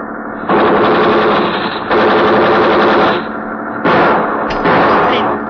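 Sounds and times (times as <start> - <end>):
automatic gunfire from a ship: 0.5 - 5.4.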